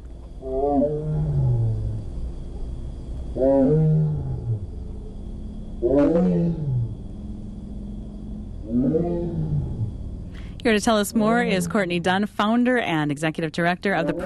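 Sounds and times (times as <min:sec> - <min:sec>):
low steady hum: 0:00.0 - 0:14.2
speech: 0:00.4 - 0:01.3, 0:05.8 - 0:06.6, 0:10.6 - 0:14.2
tiger at Milwaukee County Zoo roaring: 0:00.4 - 0:02.0, 0:03.4 - 0:10.6.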